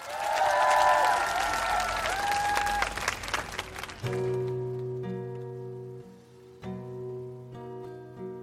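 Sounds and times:
people whooping: 0.0 - 4.3
crowd clapping: 0.0 - 5.4.

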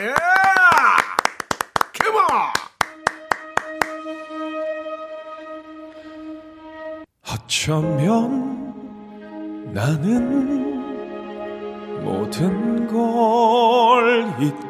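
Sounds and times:
audience applause and cheering: 0.0 - 4.1
speech: 7.5 - 8.6, 9.8 - 10.6, 12.1 - 14.6.

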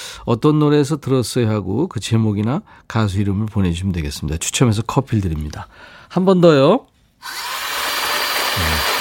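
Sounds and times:
speech: 0.2 - 7.5
blender crushing ice and fruit: 7.2 - 8.9.

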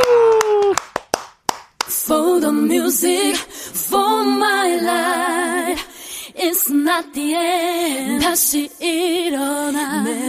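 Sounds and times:
hand claps: 0.0 - 2.0
speech: 2.1 - 10.2.

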